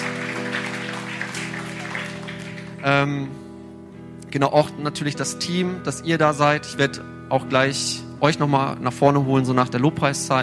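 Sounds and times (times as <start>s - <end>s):
audience applause: 0.0s - 2.9s
speech: 2.8s - 3.4s, 4.3s - 10.4s.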